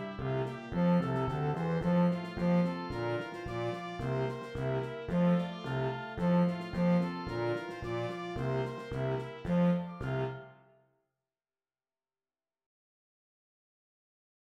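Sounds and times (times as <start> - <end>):
tuba: 0.0 - 10.5.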